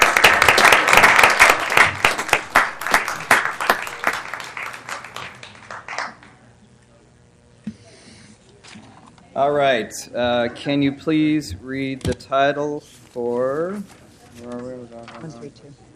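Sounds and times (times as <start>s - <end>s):
audience applause: 0.0s - 6.5s
speech: 9.4s - 15.8s.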